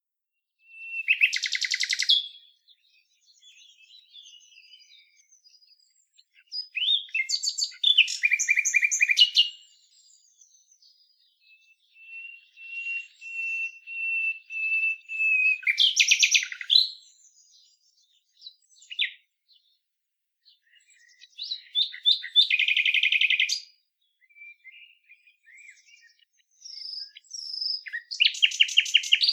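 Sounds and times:
common nightingale song: 0.6 - 19.8, 20.4 - 29.3.

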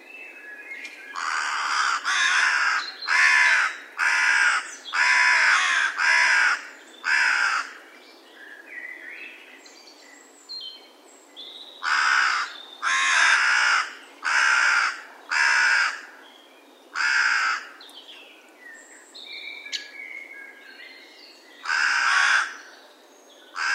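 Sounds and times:
carrion crow cawing coarsely: 1.2 - 7.8, 11.8 - 16.1, 17.0 - 17.8, 21.6 - 22.6, 23.6 - 23.7.

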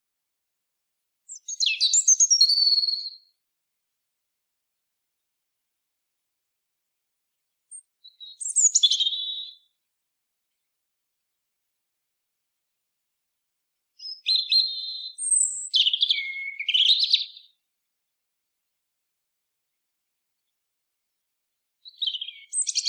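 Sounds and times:
European robin song: 1.3 - 3.3, 7.7 - 9.7, 14.0 - 17.6, 21.8 - 22.8.

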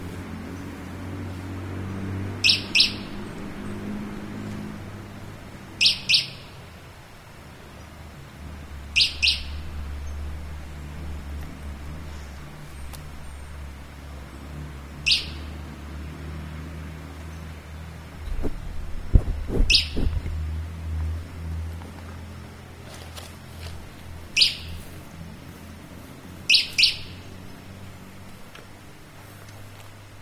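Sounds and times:
steady low engine-like hum: 0.0 - 30.2
bird chirping: 2.4 - 4.0, 5.8 - 6.6, 8.8 - 11.1, 14.3 - 15.6, 19.6 - 20.3, 24.3 - 24.8, 26.5 - 27.6.

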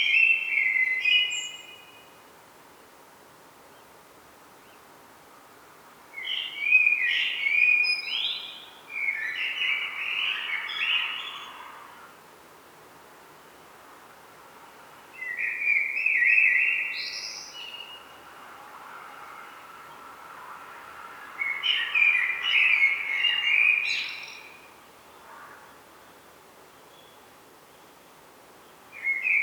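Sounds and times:
common blackbird song: 0.0 - 2.1, 6.2 - 12.1, 15.2 - 18.2, 21.2 - 25.8, 26.7 - 29.4.

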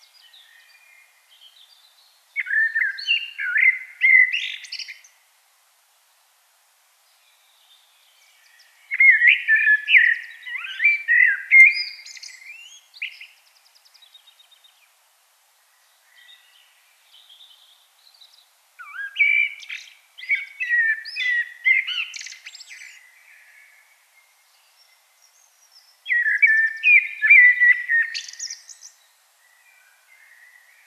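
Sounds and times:
common blackbird song: 0.0 - 5.3, 7.0 - 15.0, 15.6 - 30.8.

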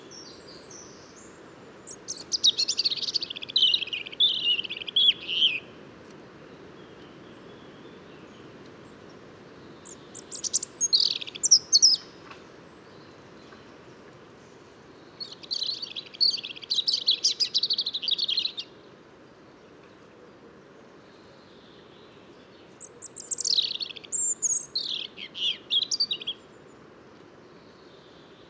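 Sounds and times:
European robin singing: 0.0 - 5.8, 6.6 - 13.8, 14.9 - 18.8, 21.2 - 26.7.

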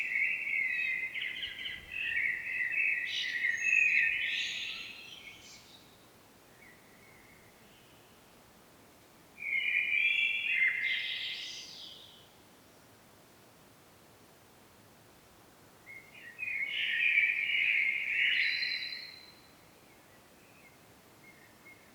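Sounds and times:
common blackbird song: 0.0 - 8.2, 9.4 - 12.3, 15.8 - 21.9.

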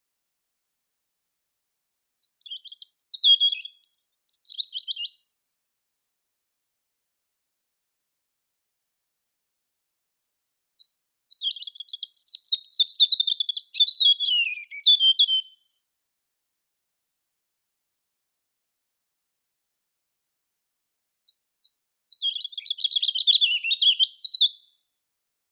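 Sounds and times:
European robin Erithacus rubecula singing: 2.0 - 5.2, 10.8 - 15.7, 21.6 - 24.8.

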